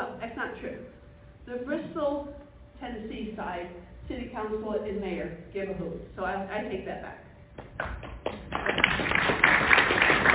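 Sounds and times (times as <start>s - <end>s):
speech: 0.5s - 9.7s
audience applause: 8.0s - 10.3s.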